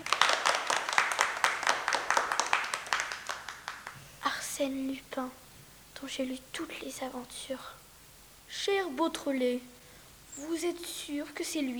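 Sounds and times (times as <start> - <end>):
applause from a small group: 0.0 - 4.0
speech: 4.6 - 5.4, 6.0 - 7.8, 8.5 - 9.8, 10.4 - 11.7.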